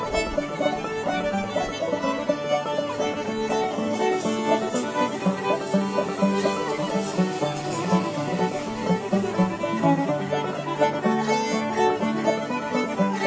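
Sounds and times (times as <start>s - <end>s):
fiddle playing in the key of D: 0.0s - 13.2s.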